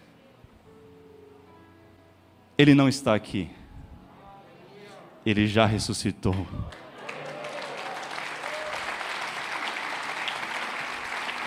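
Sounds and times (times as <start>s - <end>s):
speech: 2.6s - 3.6s, 5.2s - 6.8s
audience applause: 6.3s - 11.4s.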